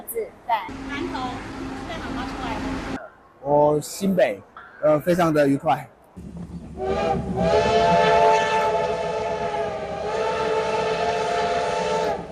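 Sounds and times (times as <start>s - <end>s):
speech: 0.2s - 1.5s, 3.4s - 8.2s
steam locomotive rumbling: 0.6s - 3.1s, 6.2s - 12.3s
steam locomotive whistle blowing: 6.8s - 12.3s.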